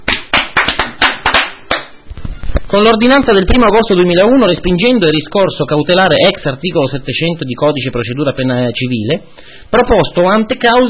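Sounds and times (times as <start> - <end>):
hand clapping: 0.0 - 2.0
speech: 2.7 - 10.8.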